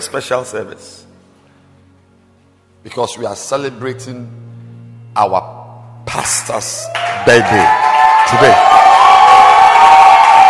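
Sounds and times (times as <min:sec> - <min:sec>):
speech: 0:00.0 - 0:01.1, 0:02.8 - 0:04.6, 0:05.2 - 0:08.8
audience shouting and cheering: 0:06.8 - 0:10.4.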